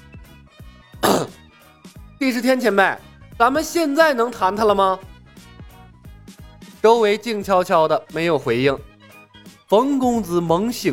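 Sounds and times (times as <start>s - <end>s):
person coughing: 1.0s - 1.4s
throat clearing: 1.0s - 1.4s
speech: 2.2s - 5.1s, 6.8s - 8.9s, 9.7s - 10.9s.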